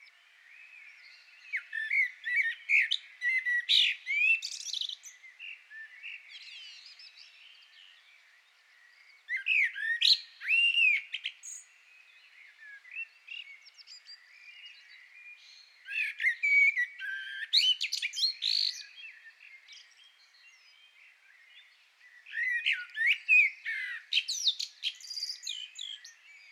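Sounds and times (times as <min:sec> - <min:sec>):
common blackbird singing: 0:00.0 - 0:26.5.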